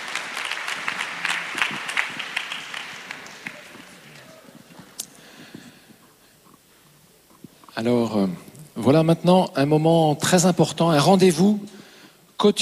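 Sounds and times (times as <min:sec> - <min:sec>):
audience applause: 0:00.0 - 0:05.4
speech: 0:07.8 - 0:11.7, 0:12.4 - 0:12.5.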